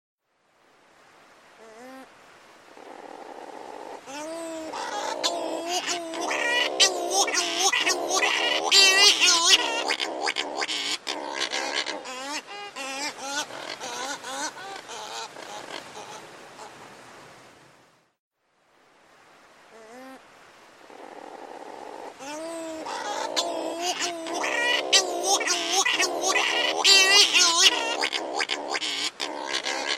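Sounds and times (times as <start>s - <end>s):
bird squawks, nasal calls and chatter: 4.1s - 16.2s, 22.2s - 29.9s.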